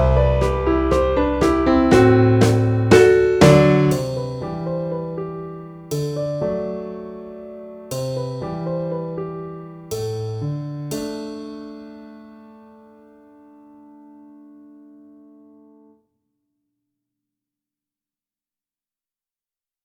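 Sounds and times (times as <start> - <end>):
drum kit: 0.0 - 5.2, 5.9 - 7.2, 7.9 - 9.2, 9.9 - 11.8
pop piano: 0.0 - 15.9.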